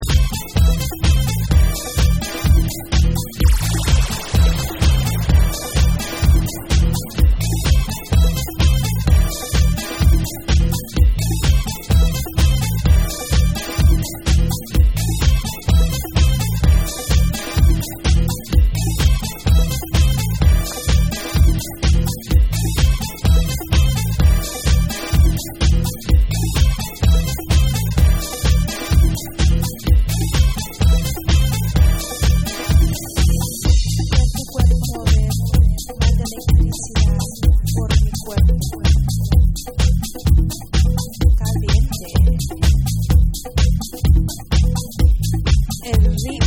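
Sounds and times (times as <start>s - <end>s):
vocal mix music: 0.0s - 46.4s.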